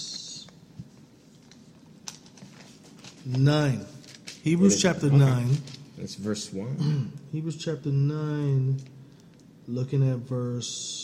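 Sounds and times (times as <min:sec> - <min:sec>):
book page turning: 0:00.4 - 0:06.0
speech: 0:03.2 - 0:09.0, 0:09.7 - 0:11.0.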